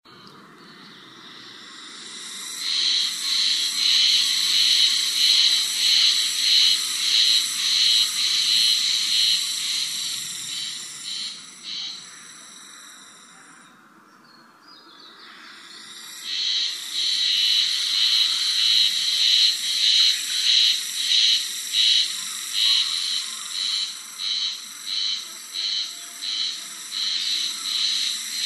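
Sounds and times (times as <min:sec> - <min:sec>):
Japanese spring cicada buzzing: 0:00.7 - 0:13.7, 0:15.3 - 0:28.4.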